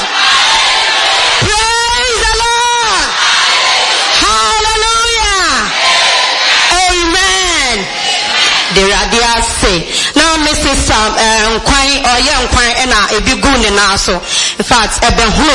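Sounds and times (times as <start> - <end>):
audience shouting praise: 0.0 - 9.4
speech: 9.6 - 15.5.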